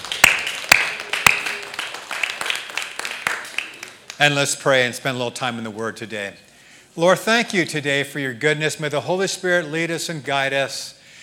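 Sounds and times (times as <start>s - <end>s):
audience hand clapping: 0.0s - 4.4s
speech: 4.2s - 6.4s, 7.0s - 11.0s.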